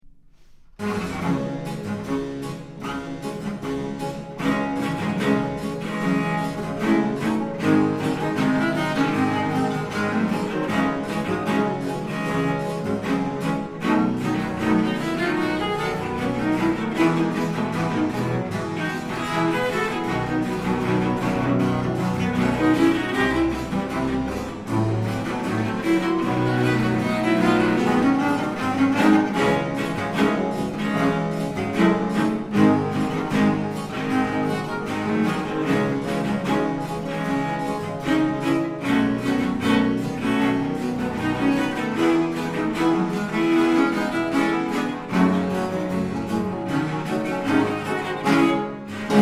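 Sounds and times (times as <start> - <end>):
tango music: 0.0 - 49.1.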